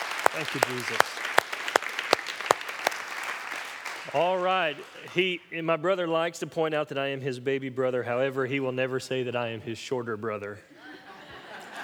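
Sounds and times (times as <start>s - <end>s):
laughter: 0.0s - 1.8s, 4.2s - 5.4s, 10.7s - 11.8s
audience hand claps: 0.0s - 5.4s
speech: 0.4s - 1.3s, 4.0s - 11.0s.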